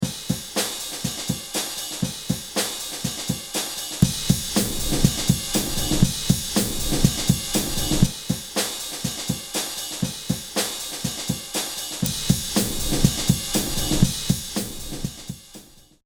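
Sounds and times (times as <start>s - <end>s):
drums: 0.0s - 16.0s.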